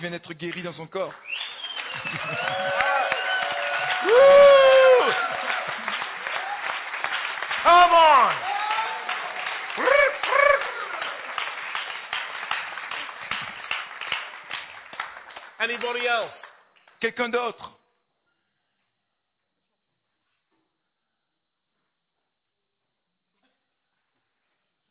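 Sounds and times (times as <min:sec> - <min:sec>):
speech: 0:00.0 - 0:01.4, 0:02.0 - 0:03.0, 0:04.0 - 0:05.6, 0:15.6 - 0:16.4, 0:17.0 - 0:17.8
audience applause: 0:01.2 - 0:16.6.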